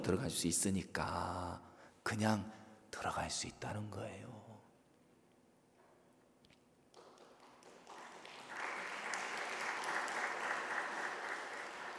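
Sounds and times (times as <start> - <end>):
speech: 0.0 - 4.6
applause: 6.9 - 11.9.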